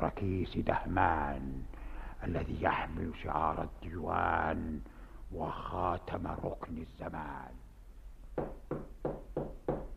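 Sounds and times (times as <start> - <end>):
speech: 0.0 - 7.6
knocking on a door: 8.4 - 9.9.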